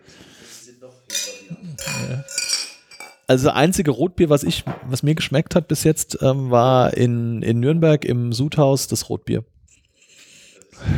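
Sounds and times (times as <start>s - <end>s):
beer glasses clinking in a toast: 1.1s - 3.4s
speech: 1.6s - 2.4s, 3.3s - 9.6s.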